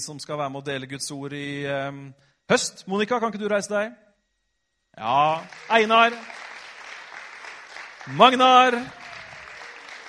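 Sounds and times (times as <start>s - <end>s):
speech: 0.0s - 4.1s, 5.0s - 6.5s, 8.0s - 9.0s
crowd clapping: 5.2s - 10.0s.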